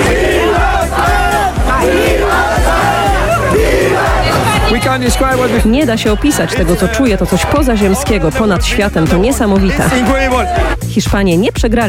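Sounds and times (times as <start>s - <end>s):
laughter: 0.0s - 10.8s
crowd celebrating a World Cup win, shouting and chanting: 0.0s - 10.9s
steady pounding beat: 0.0s - 11.8s
speech: 5.0s - 11.8s.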